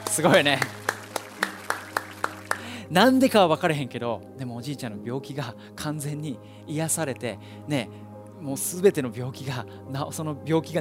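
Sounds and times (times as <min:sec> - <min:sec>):
applause, hands clapping: 0:00.0 - 0:02.8
speech: 0:00.2 - 0:00.8, 0:02.9 - 0:10.8.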